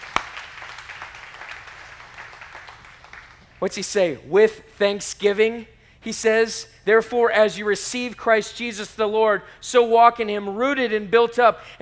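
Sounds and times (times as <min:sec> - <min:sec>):
audience clapping: 0:00.0 - 0:04.0
speech: 0:03.6 - 0:11.8.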